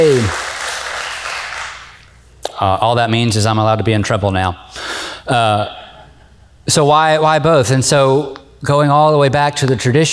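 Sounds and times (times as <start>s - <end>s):
speech: 0.0s - 0.4s, 2.6s - 5.8s, 6.6s - 10.1s
audience applause: 0.0s - 2.0s.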